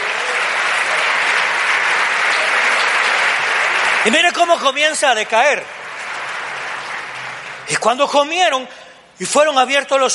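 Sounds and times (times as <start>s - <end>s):
loud audience applause: 0.0s - 8.6s
speech: 4.0s - 5.8s, 7.8s - 10.1s.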